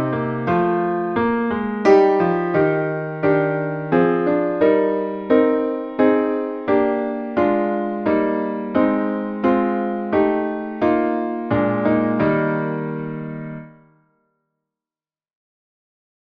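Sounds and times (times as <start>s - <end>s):
classical piano piece: 0.0s - 13.9s.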